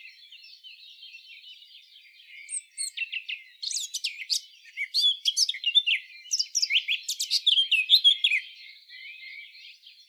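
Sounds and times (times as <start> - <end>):
Eurasian blackcap (Sylvia atricapilla) song, scratchy warble and clear varied notes: 2.4 - 8.5.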